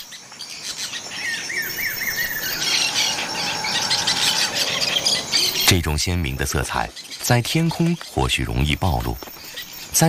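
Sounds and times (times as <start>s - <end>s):
steady high hissing insect-like noise: 0.0s - 10.0s
parrots squawking and squealing in a chorus: 1.6s - 5.8s
speech: 5.7s - 9.4s.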